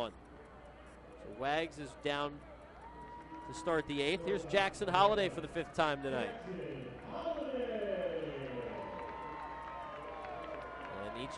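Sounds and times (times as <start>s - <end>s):
speech: 1.2s - 2.5s, 3.5s - 7.4s, 11.2s - 11.3s
home crowd ovation for batter: 2.8s - 3.9s, 7.0s - 11.3s.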